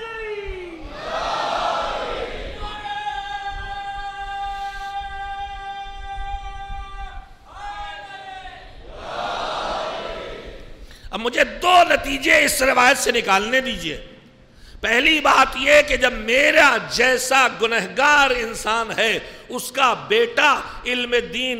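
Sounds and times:
crowd at a religious gathering chanting salawat: 0.8s - 2.8s, 8.8s - 10.8s
speech: 11.2s - 14.1s, 14.8s - 21.5s.

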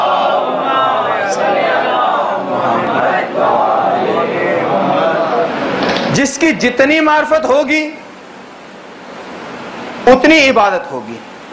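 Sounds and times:
crowd reciting salawat together during a religious sermon: 0.0s - 6.2s
speech: 6.2s - 8.0s, 10.2s - 11.3s.

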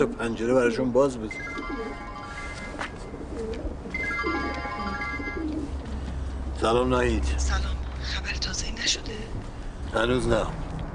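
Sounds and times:
speech: 0.0s - 1.7s, 6.6s - 10.7s
thin sustained higher tone: 1.3s - 3.1s, 3.9s - 5.6s
pigeons cooing: 3.0s - 5.8s.

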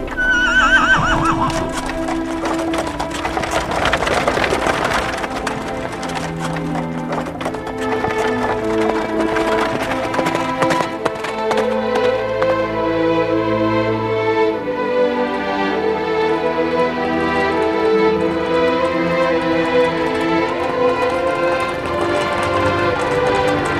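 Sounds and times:
horse neighing as a horse-drawn chariot sets off: 0.0s - 2.1s
clip-clop hoofbeats of a horse-drawn chariot: 0.0s - 23.7s.

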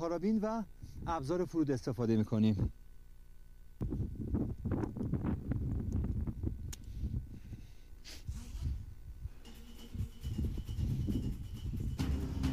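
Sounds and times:
speech: 0.0s - 2.8s, 3.8s - 4.5s
strong gusty wind on a mountain rock wall: 3.8s - 7.6s, 9.9s - 12.4s.

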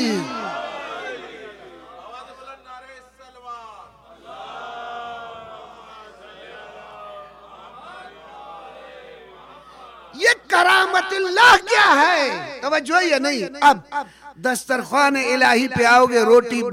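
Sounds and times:
large crowd shouting in answer to a chant during a speech: 0.0s - 2.6s, 3.7s - 11.2s
speech: 10.6s - 16.7s.

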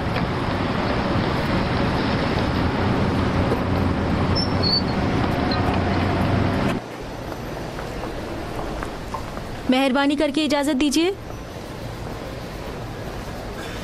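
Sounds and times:
train about to depart as passengers board: 0.0s - 13.8s
speech: 9.7s - 11.3s.

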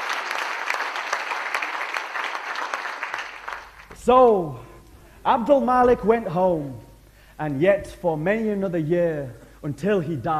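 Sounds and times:
audience applause: 0.0s - 3.9s
speech: 4.0s - 4.6s, 5.2s - 10.3s.

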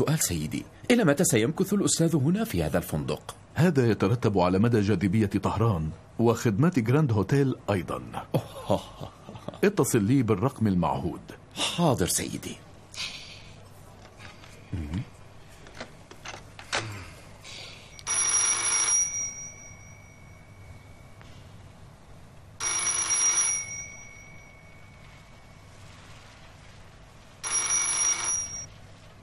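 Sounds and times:
speech: 0.0s - 13.2s, 14.7s - 15.1s
telephone bell ringing in a Tehran hotel: 17.9s - 21.2s, 22.6s - 25.5s, 27.4s - 28.8s.

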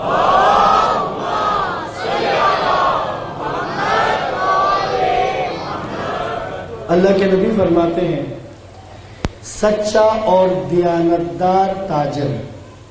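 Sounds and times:
crowd loudly chanting a religious salutation: 0.0s - 7.0s
speech: 7.0s - 8.4s, 9.6s - 12.5s.

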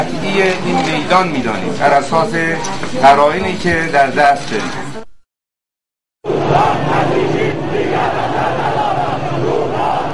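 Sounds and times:
speech: 0.0s - 5.1s
crowd of street protesters shouting after an election result: 6.3s - 10.1s.

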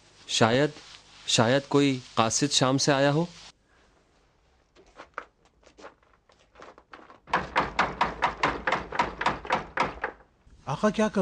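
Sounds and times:
speech: 0.3s - 3.5s, 10.8s - 11.2s
knuckles knocking on a door: 7.3s - 10.3s.

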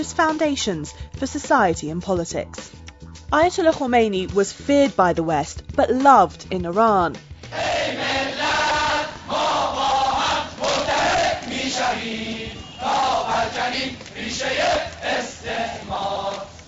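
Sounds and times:
speech: 0.0s - 8.1s
huge crowd cheering and chanting: 7.5s - 16.6s.

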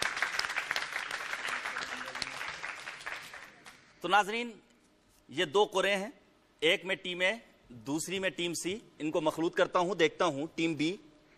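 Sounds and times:
audience applause: 0.0s - 3.7s
speech: 4.0s - 4.7s, 5.3s - 11.3s.

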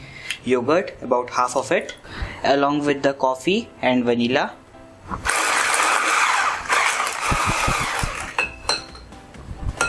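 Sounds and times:
speech: 0.4s - 5.4s
electric mixer whipping cake batter: 5.2s - 8.5s.

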